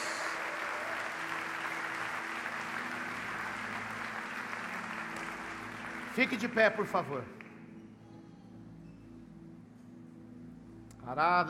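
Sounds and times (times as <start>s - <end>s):
crowd applause: 0.0s - 7.3s
speech: 6.2s - 7.4s, 11.1s - 11.4s.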